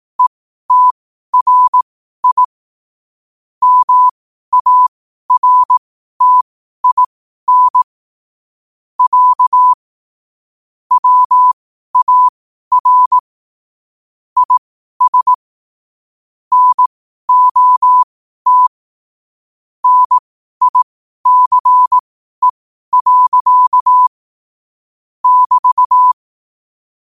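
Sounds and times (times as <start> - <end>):
morse code at 5 wpm: 0.2 - 2.5, 3.6 - 7.9, 9.0 - 9.8, 10.9 - 13.2, 14.4 - 15.4, 16.5 - 18.7, 19.8 - 24.1, 25.2 - 26.2.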